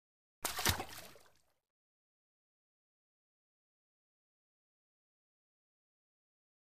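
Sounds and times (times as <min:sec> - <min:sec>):
single splash from swimming arm movement: 0:00.4 - 0:01.4.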